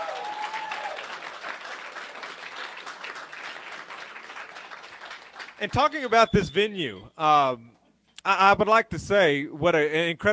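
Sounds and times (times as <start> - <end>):
round of applause: 0.0 - 6.5
speech: 5.6 - 10.3.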